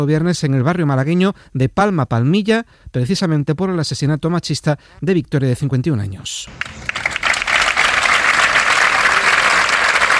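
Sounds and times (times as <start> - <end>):
speech: 0.0 - 7.0
farewell applause by workers: 6.5 - 10.1.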